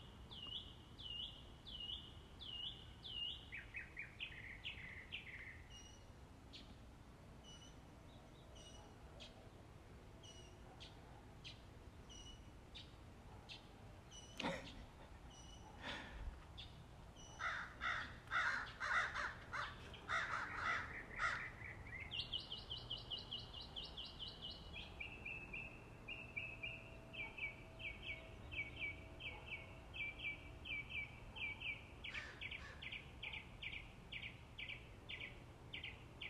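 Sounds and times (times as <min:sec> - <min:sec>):
birds chirping: 0:00.0 - 0:06.8, 0:07.4 - 0:36.2.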